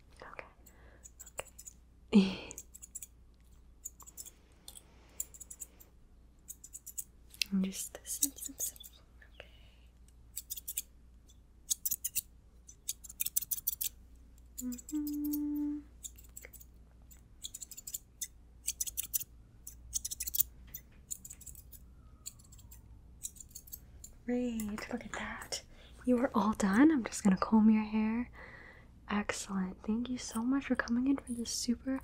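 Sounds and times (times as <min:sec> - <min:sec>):
person whispering: 0:00.1 - 0:00.6, 0:07.4 - 0:09.5, 0:14.6 - 0:15.9, 0:24.3 - 0:26.5
scissors trimming hair: 0:01.0 - 0:01.8, 0:02.5 - 0:05.8, 0:06.5 - 0:07.5, 0:08.1 - 0:09.0, 0:10.3 - 0:10.9, 0:11.7 - 0:13.9, 0:14.6 - 0:24.9
speech: 0:02.1 - 0:02.4, 0:07.7 - 0:08.3, 0:26.1 - 0:28.5, 0:29.3 - 0:32.0.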